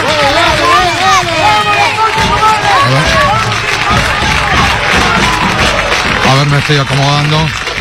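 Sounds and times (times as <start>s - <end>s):
stadium crowd applauding: 0.0s - 7.8s
speech: 6.6s - 7.7s.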